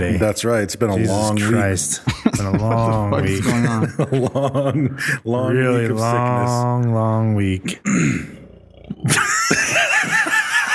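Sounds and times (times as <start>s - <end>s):
speech: 0.0s - 8.4s
laughter: 2.0s - 5.4s, 9.0s - 10.7s
big long burp: 7.8s - 9.3s.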